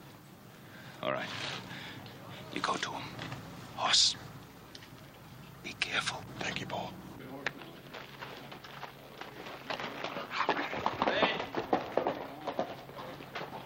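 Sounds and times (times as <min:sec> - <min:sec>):
speech: 0:01.0 - 0:01.7, 0:02.6 - 0:04.3, 0:05.6 - 0:07.0
horse hooves clip-clopping as a rider comes down a street: 0:07.3 - 0:13.6.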